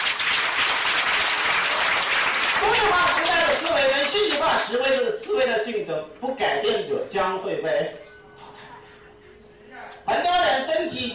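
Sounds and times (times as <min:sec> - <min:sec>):
audience applause: 0:00.0 - 0:04.6
speech: 0:04.1 - 0:08.1, 0:09.9 - 0:11.1.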